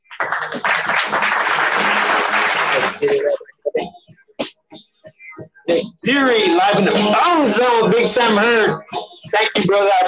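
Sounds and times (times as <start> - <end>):
crowd clapping and cheering: 0.0 - 3.4
speech: 3.0 - 3.4, 6.1 - 10.0.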